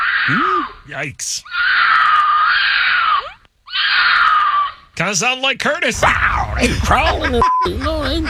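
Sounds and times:
laughter: 0.0 - 2.3, 5.8 - 8.2
mountain lion mating scream: 0.0 - 5.0, 5.9 - 6.7
speech: 0.2 - 1.8, 5.0 - 8.2.

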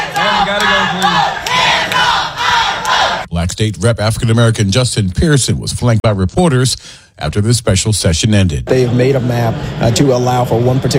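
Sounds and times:
protesters shouting inside legislative chamber: 0.0 - 3.3
speech: 3.5 - 10.9.

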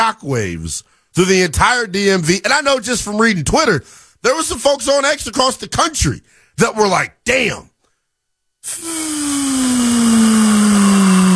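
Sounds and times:
speech: 0.1 - 7.7, 8.6 - 10.8
air being let out of a balloon: 8.6 - 11.3.

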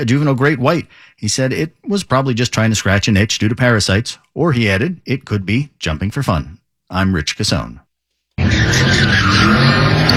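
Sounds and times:
speech: 0.0 - 7.8, 8.6 - 10.1
car tires screeching as a car does donuts at a street takeover: 8.4 - 10.1.

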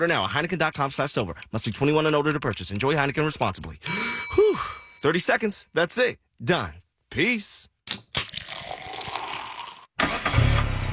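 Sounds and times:
speech: 0.0 - 7.7
car engine cranking, starting and idling: 10.0 - 10.9.

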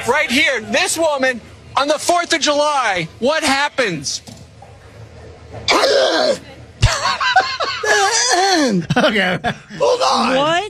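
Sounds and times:
speech: 0.0 - 4.3, 5.5 - 6.5, 7.9 - 10.6
woman clearing her throat: 5.7 - 7.2, 7.8 - 8.8
woman coughing: 5.7 - 8.9
laughter: 6.8 - 10.4.

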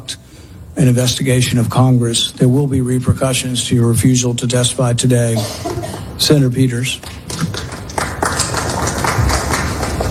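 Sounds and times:
speech: 0.8 - 7.5
audience clapping at a hearing: 6.9 - 10.0.

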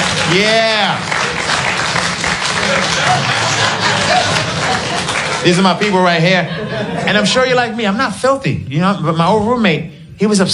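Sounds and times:
crowd clapping: 0.0 - 6.3
audience murmuring and cheering: 0.0 - 10.5
laughter: 0.0 - 10.5
speech: 0.3 - 1.1, 4.9 - 10.5.

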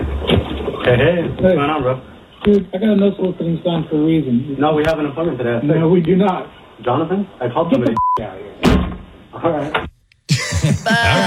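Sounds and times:
speech: 0.8 - 11.2
door slammed shut: 8.6 - 9.1
laughter: 10.3 - 11.2.

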